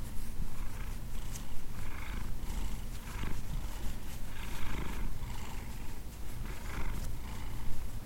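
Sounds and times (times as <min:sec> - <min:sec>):
cat purring: 0:00.2 - 0:08.0.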